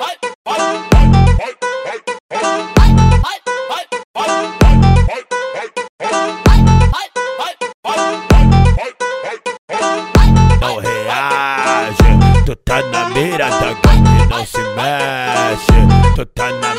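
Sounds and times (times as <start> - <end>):
explode funk music: 0.5 - 1.4, 2.3 - 3.2, 4.2 - 5.1, 6.0 - 7.0, 7.9 - 8.8, 9.7 - 16.7.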